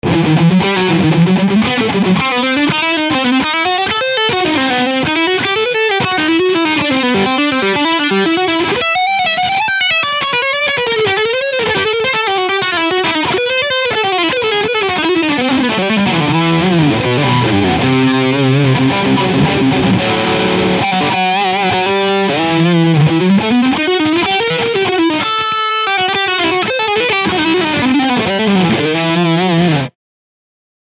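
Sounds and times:
Dean MAB4 guitar lead sound on bridge pickup: 0:00.0 - 0:30.0.

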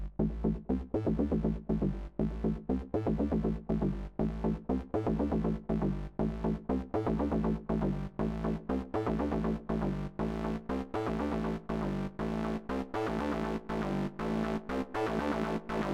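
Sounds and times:
dreadbox Erebus V3 three-oscillator synthesizer chord through filter: 0:00.2 - 0:15.9.

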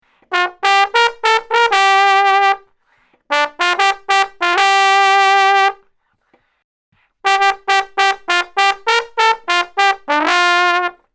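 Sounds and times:
trombone solo: 0:00.3 - 0:02.7, 0:03.3 - 0:05.8, 0:07.2 - 0:11.1.

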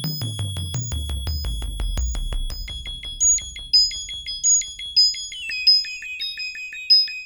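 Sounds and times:
high syrinx triangle sequence: 0:00.1 - 0:07.2.

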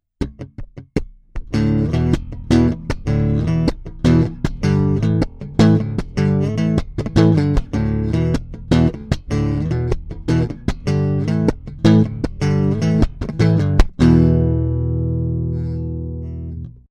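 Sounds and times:
Warw Strea 2PU bass guitar chords: 0:00.2 - 0:16.8.

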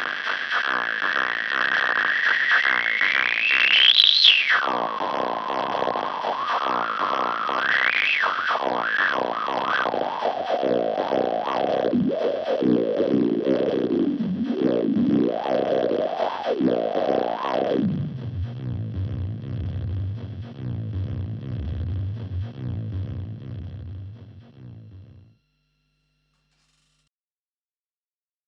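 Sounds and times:
filtered drum loop: 0:00.0 - 0:25.3.

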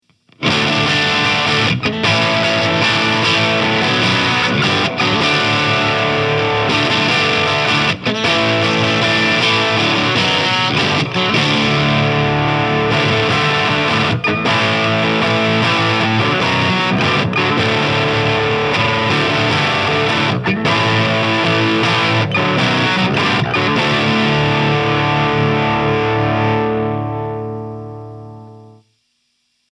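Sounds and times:
Chapman Guitars ML1 Modern baritone guitar crunch: 0:00.0 - 0:28.8.

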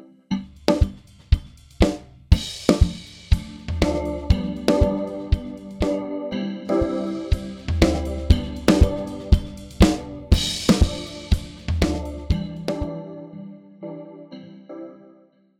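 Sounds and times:
vocoder drums: 0:00.4 - 0:06.1, 0:06.7 - 0:12.9.

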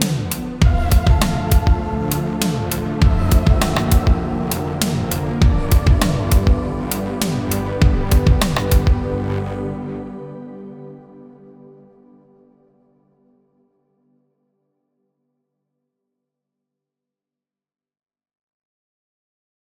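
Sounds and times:
Arturia V Collection 9 Augmented Voices strings intro: 0:00.0 - 0:13.5.

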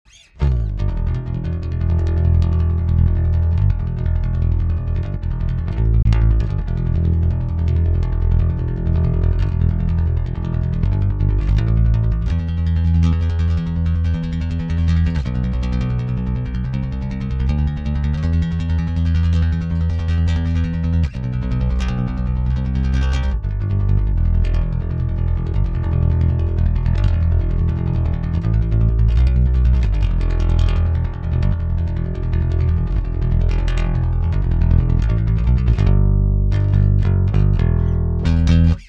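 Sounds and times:
metal guitar picking with active pickup at full boost: 0:00.0 - 0:38.8.

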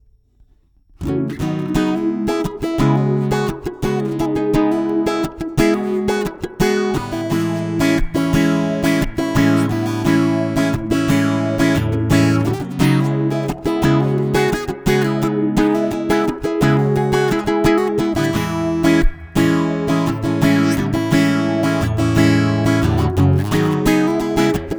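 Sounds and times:
jumbo guitar with auto wah and spring reverb: 0:01.0 - 0:24.7.

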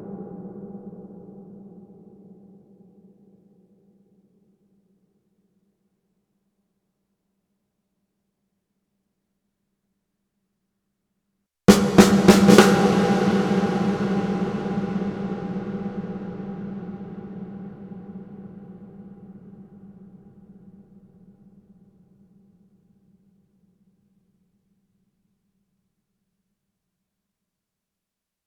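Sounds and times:
Sony DRE 2000 real snare sequence: 0:11.7 - 0:16.5.

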